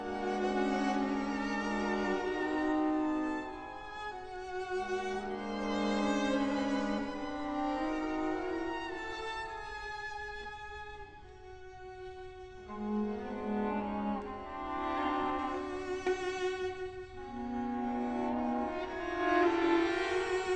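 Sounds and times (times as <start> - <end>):
classical music: 0.0 - 20.5.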